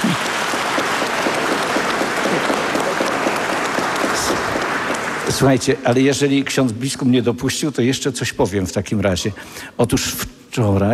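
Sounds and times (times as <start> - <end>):
audience applause: 0.0 - 6.3
speech: 5.4 - 10.9.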